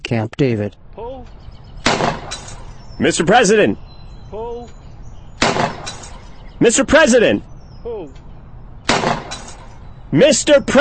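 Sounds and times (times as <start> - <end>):
speech: 0.1 - 1.4, 3.0 - 4.8, 6.6 - 8.2, 10.1 - 10.7
gunshots from skeet shooting at a private shooting range at Camp David: 1.8 - 2.7, 5.4 - 6.3, 8.8 - 9.7.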